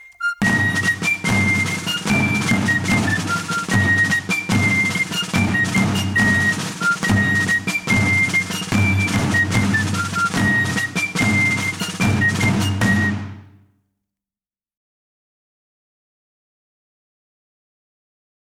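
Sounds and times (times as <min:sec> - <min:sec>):
tamborrada drums playing: 0:00.4 - 0:13.6.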